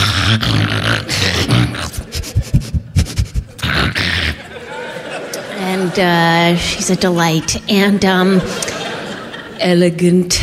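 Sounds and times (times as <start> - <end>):
person imitating a dog: 0.0 - 4.5
laughter: 0.4 - 9.8
speech: 6.0 - 8.7, 9.6 - 10.4.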